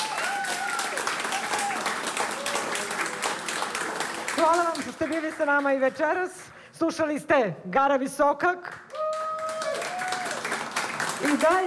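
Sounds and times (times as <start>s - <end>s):
concert audience voices and cheers: 0.0s - 4.6s, 8.9s - 11.6s
concert audience applauding at a live evening show: 0.0s - 6.1s, 8.6s - 11.6s
speech: 4.4s - 8.8s, 11.2s - 11.6s.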